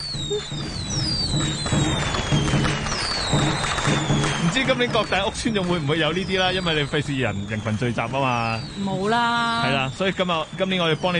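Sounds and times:
fireworks sound effect crackling bursts and pops: 0.0s - 11.1s
speech: 0.3s - 2.6s, 3.3s - 11.1s.

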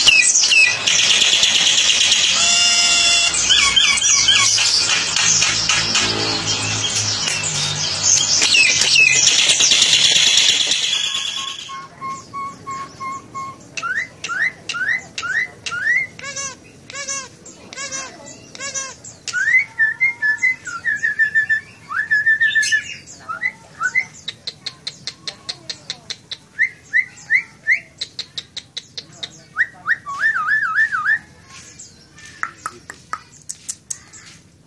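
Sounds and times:
Nias hill myna whistling song: 0.0s - 16.2s, 19.3s - 24.2s, 29.6s - 31.3s
harsh squawks: 0.0s - 20.8s.

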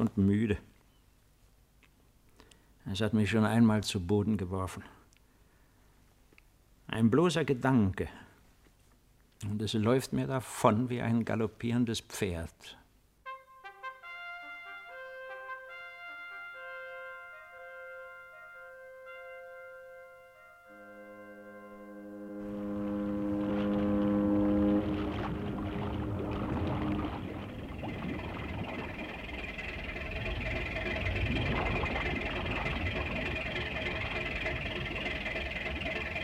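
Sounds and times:
speech: 0.1s - 0.7s, 2.9s - 5.0s, 6.9s - 8.2s, 9.4s - 12.8s
boat motor starting and running: 22.3s - 36.2s.

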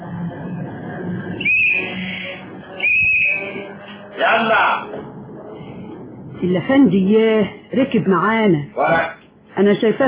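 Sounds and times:
tram arriving in a radio drama sound effect: 0.0s - 10.0s
shrill whistle-like tram squeals: 1.4s - 2.1s, 2.8s - 3.6s
speech: 6.4s - 10.0s.

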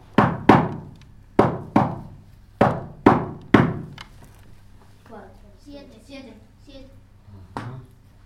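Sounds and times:
knocking on a door: 0.2s - 4.0s.

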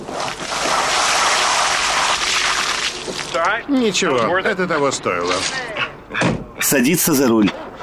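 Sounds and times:
water gushing out of an opened car door onto a man's shoes at a car wash: 0.0s - 3.6s
speech: 3.4s - 7.6s.

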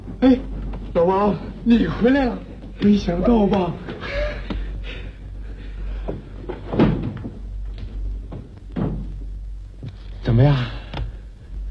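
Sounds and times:
speech: 0.2s - 4.2s, 10.4s - 10.8s
door being opened: 6.4s - 7.5s, 8.3s - 10.0s.

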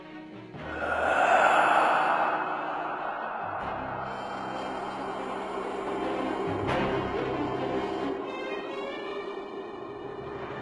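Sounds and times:
man wheezing with mouth gaping: 0.6s - 9.8s.

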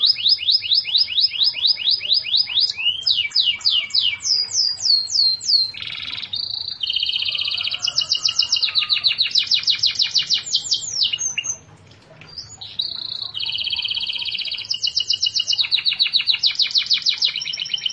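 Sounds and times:
canary singing: 0.0s - 17.9s.

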